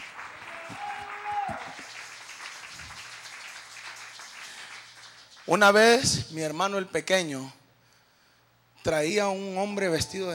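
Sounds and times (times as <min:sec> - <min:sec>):
audience clapping hands: 0:00.0 - 0:06.2
speech: 0:05.5 - 0:07.6, 0:08.8 - 0:10.3.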